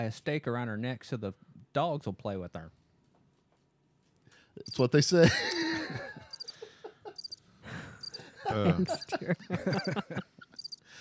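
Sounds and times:
speech: 0:00.0 - 0:02.8, 0:04.6 - 0:06.2, 0:08.5 - 0:10.3
crickets chirping at night: 0:04.6 - 0:04.9, 0:06.3 - 0:06.6, 0:07.2 - 0:07.4, 0:08.0 - 0:08.2, 0:10.6 - 0:10.8
laughter: 0:05.1 - 0:10.6.

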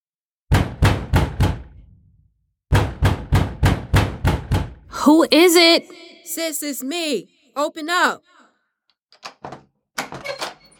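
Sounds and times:
heavy banging on a door: 0:00.5 - 0:02.0, 0:02.7 - 0:04.9
speech: 0:05.1 - 0:08.3.

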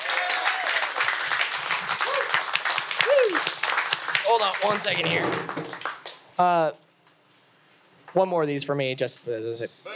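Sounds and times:
audience applauding: 0:00.0 - 0:06.2
speech: 0:04.3 - 0:05.8, 0:06.4 - 0:06.8, 0:08.1 - 0:09.9.

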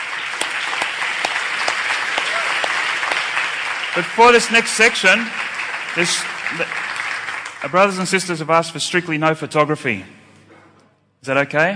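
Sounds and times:
crowd applause: 0:00.0 - 0:08.5
speech: 0:04.0 - 0:05.4, 0:06.0 - 0:06.9, 0:07.6 - 0:10.2, 0:11.2 - 0:11.7.

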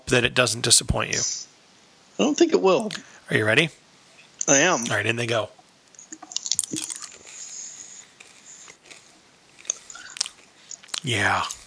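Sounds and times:
speech: 0:00.1 - 0:01.5, 0:02.2 - 0:03.8, 0:04.5 - 0:05.6, 0:11.0 - 0:11.6
Skittles candy bitten and chewed: 0:06.0 - 0:11.6.

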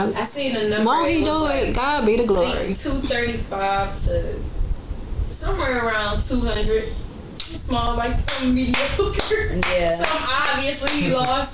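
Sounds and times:
speech: 0:00.0 - 0:04.5, 0:05.3 - 0:11.5
hand clapping: 0:08.3 - 0:11.4.

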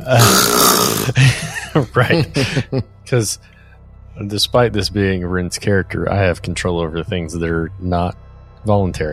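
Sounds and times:
speech: 0:00.0 - 0:00.6, 0:01.8 - 0:03.6, 0:04.2 - 0:09.1
voice imitating loud snore: 0:00.0 - 0:01.2
laughter: 0:01.0 - 0:02.9.

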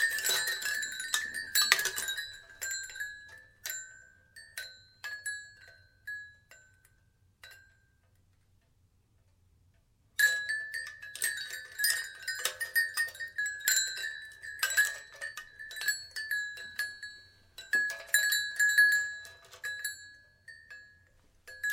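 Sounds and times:
wind chimes ringing: 0:00.0 - 0:05.6, 0:10.2 - 0:21.7.

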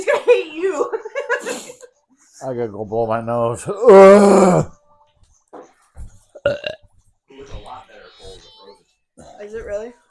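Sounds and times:
speech: 0:02.4 - 0:04.7
loud raspy burp: 0:06.4 - 0:06.8.

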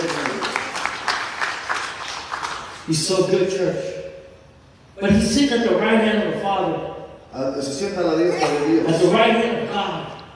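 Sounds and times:
audience applause: 0:00.0 - 0:02.8
speech: 0:02.9 - 0:04.0, 0:05.0 - 0:10.0.

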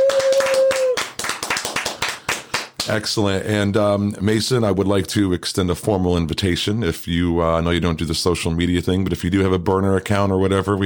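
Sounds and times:
round of applause: 0:00.0 - 0:02.9
speech: 0:02.9 - 0:10.8.

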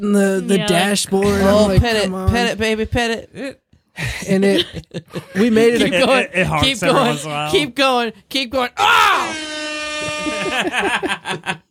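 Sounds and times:
speech: 0:00.0 - 0:11.6
laughter: 0:04.3 - 0:07.2, 0:09.9 - 0:11.6
excited voices exclaiming: 0:08.8 - 0:10.8
car air horn blast: 0:09.2 - 0:10.6.

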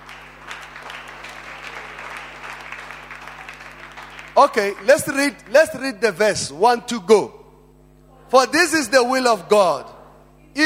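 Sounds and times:
audience clapping: 0:00.0 - 0:05.8
speech: 0:04.4 - 0:07.4, 0:08.3 - 0:10.0.

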